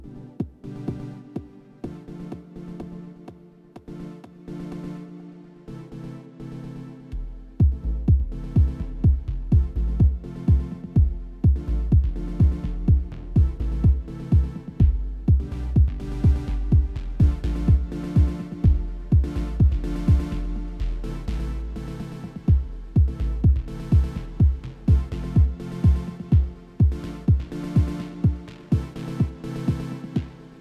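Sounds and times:
acid bass: 7.1 - 30.5.

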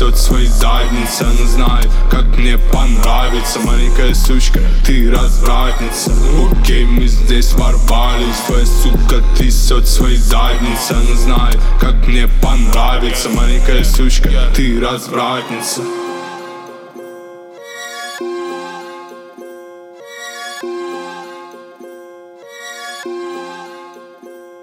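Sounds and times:
31 to 35 Hz low bass tone: 0.0 - 14.9.

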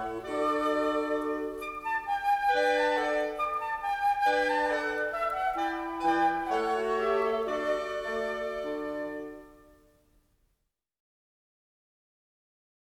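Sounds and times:
Christmas music: 0.0 - 10.2.

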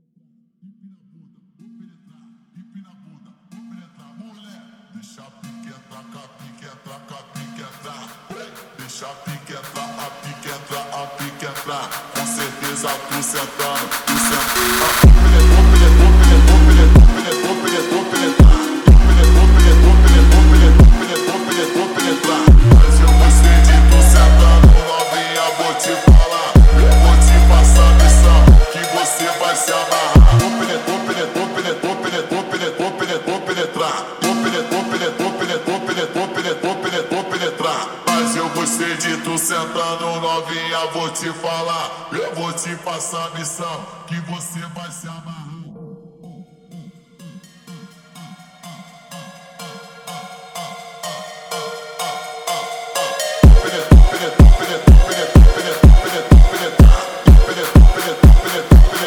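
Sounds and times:
funk music: 12.8 - 32.0, 53.4 - 59.0.

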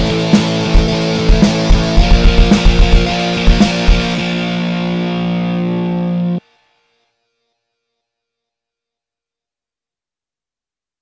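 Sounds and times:
metal backing track: 0.0 - 6.4.

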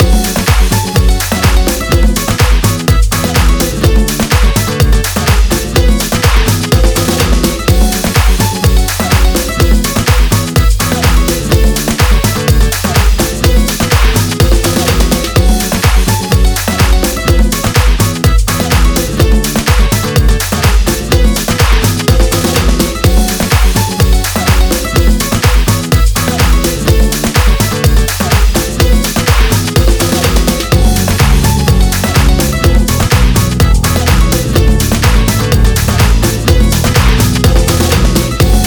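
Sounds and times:
flat guitar: 0.0 - 28.1, 28.7 - 38.6.

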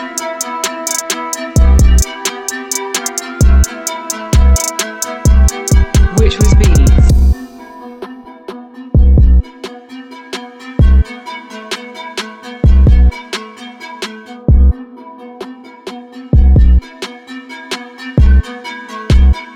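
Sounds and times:
training beat: 0.0 - 7.7, 9.0 - 9.5, 10.8 - 11.1, 12.6 - 13.2, 14.5 - 14.8, 16.4 - 16.9, 18.2 - 18.4, 19.1 - 19.5.

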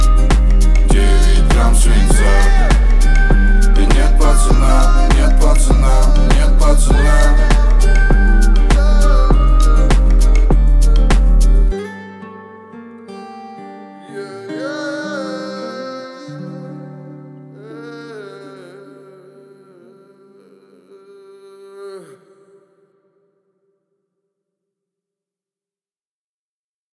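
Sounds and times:
37 39 and 41 Hz low bass tones: 0.0 - 11.7.

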